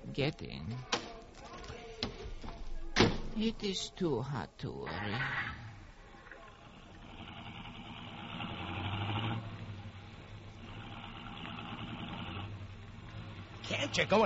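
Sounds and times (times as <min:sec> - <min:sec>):
speech: 0:00.1 - 0:00.9, 0:03.4 - 0:05.5, 0:13.9 - 0:14.2
car engine running in hot weather: 0:06.9 - 0:14.2.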